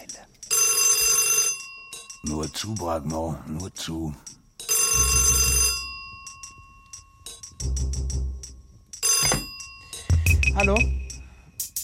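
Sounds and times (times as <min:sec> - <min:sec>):
old-style telephone bell ringing: 0:00.5 - 0:02.2, 0:04.7 - 0:07.3, 0:09.0 - 0:10.2
speech: 0:02.2 - 0:04.3, 0:04.9 - 0:05.7, 0:10.6 - 0:11.0.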